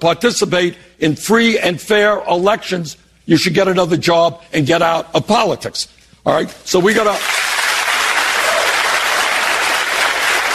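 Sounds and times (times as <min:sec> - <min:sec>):
speech: 0:00.0 - 0:07.4
audience clapping: 0:07.1 - 0:10.5.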